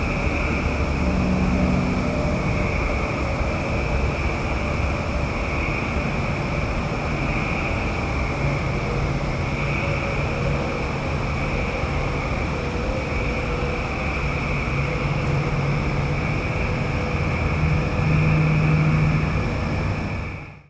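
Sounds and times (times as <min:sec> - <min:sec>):
frogs: 0:00.0 - 0:20.6.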